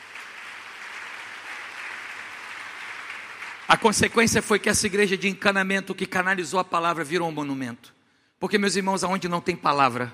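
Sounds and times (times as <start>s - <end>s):
audience applauding: 0.0s - 4.8s
speech: 3.7s - 10.1s.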